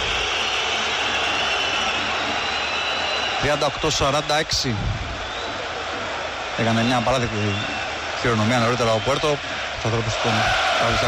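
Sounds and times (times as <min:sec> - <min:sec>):
crowd booing a player: 0:00.0 - 0:04.5, 0:05.1 - 0:11.0
speech: 0:03.4 - 0:05.0, 0:06.6 - 0:11.0.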